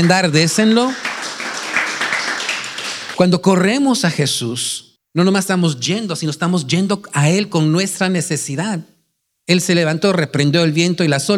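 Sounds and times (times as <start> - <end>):
speech: 0.0 - 1.1, 3.2 - 11.3
audience applause: 0.0 - 3.2.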